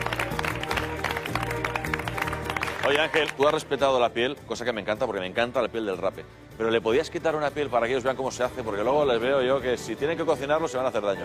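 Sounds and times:
applause: 0.0 - 3.8
speech: 2.9 - 11.2.

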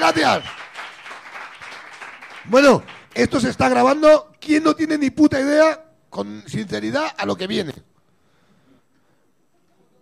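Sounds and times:
speech: 0.0 - 0.6, 2.5 - 7.9
audience applause: 0.0 - 3.3.

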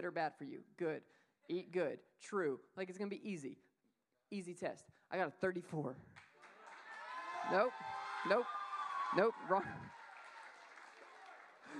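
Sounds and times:
speech: 0.0 - 3.7, 4.3 - 6.3, 7.4 - 10.0
audience clapping: 6.2 - 11.7.

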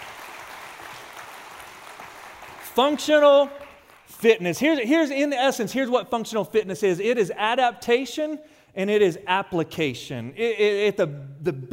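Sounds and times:
audience applause: 0.0 - 4.1
speech: 2.8 - 11.7.

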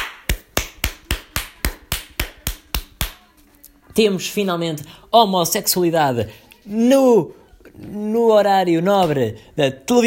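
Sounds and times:
applause, hand clapping: 0.0 - 3.2
speech: 4.0 - 10.0.

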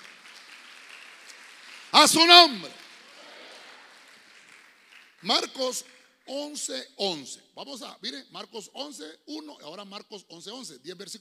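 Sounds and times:
audience clapping loudly: 0.0 - 6.6
speech: 2.0 - 2.8, 5.2 - 11.1.

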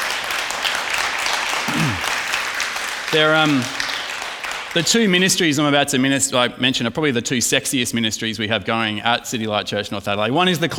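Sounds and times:
audience applause: 0.0 - 5.2
speech: 3.1 - 3.8, 4.7 - 10.7.

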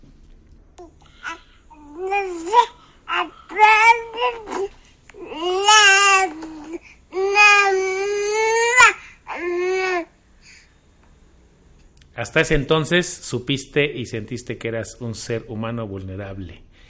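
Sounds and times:
newborn baby crying: 1.1 - 10.1
speech: 12.4 - 16.7.

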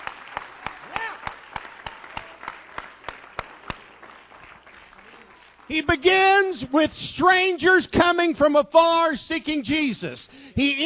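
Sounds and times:
audience hand clap of praise: 0.0 - 6.5
speech: 5.7 - 10.8.

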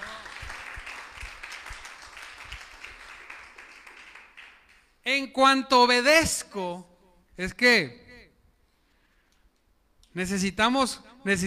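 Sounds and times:
audience applause: 0.0 - 4.8
speech: 5.1 - 8.0, 10.1 - 11.4.

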